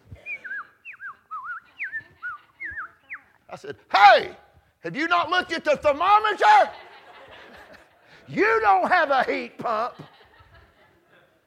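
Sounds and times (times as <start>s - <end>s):
laughter: 0.2s - 3.4s, 6.1s - 11.4s
whistled imitation of birds singing: 0.2s - 3.4s
speech: 3.5s - 6.8s, 8.3s - 10.1s.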